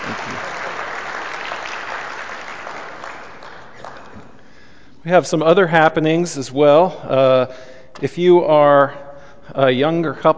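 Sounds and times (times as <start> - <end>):
audience round of applause: 0.0 - 4.4
speech: 0.1 - 0.6, 5.0 - 10.3.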